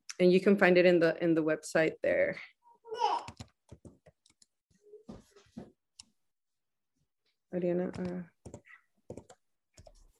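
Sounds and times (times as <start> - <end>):
speech: 0.2 - 3.4, 7.5 - 8.3
keyboard typing a website address into a chat: 3.3 - 4.5, 7.9 - 10.1.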